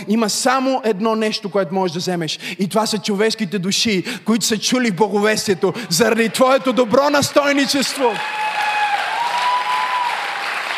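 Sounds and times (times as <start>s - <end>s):
speech: 0.0s - 8.7s
audience applause: 5.8s - 10.7s.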